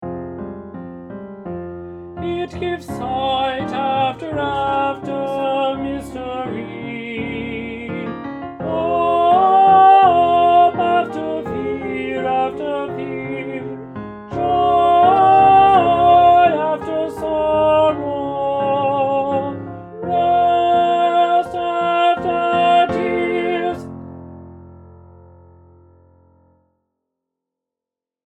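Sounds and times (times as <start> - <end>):
alto voice: 2.2 - 24.0.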